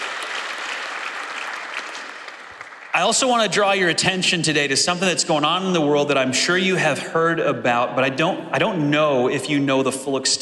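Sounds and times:
audience applause: 0.0 - 3.6
speech: 3.0 - 10.4.

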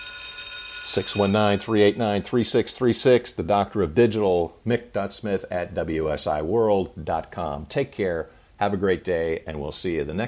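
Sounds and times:
lunch bell ringing: 0.0 - 2.2
speech: 0.9 - 10.2.

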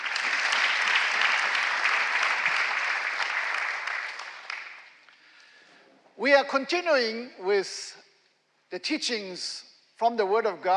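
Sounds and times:
congregation applauding at Go Center church: 0.0 - 5.1
speech: 6.2 - 8.0, 8.7 - 10.7.

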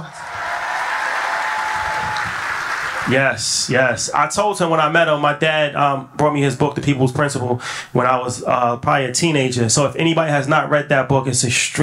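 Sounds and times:
audience clapping: 0.0 - 3.4
speech: 3.1 - 11.8.

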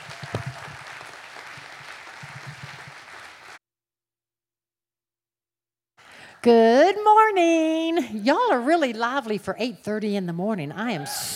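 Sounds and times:
church audience applause at a Glenwood Springs morning service: 0.0 - 3.6
speech: 6.4 - 11.3.

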